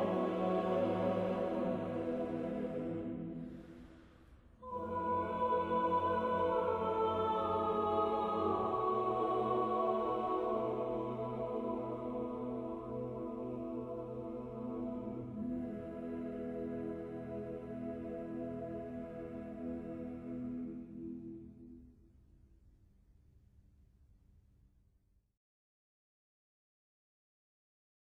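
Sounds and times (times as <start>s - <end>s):
SATB choir singing a prayer: 0.0s - 3.8s, 4.6s - 21.0s.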